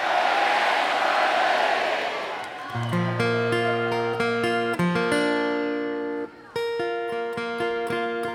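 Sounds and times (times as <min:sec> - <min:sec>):
crowd cheering and shouting: 0:00.0 - 0:03.4
sustained guitar notes ringing: 0:02.8 - 0:08.3.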